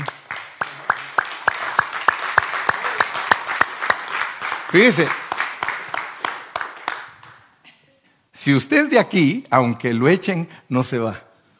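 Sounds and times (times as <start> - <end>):
audience applauding: 0.0 - 7.5
speech: 4.7 - 5.3, 8.4 - 11.3.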